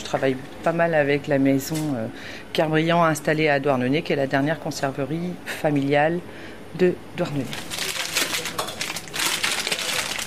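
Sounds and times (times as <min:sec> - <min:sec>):
speech: 0:00.1 - 0:07.8
wrappers rustling as cheese and small Breton food products are unpacked: 0:07.4 - 0:10.2.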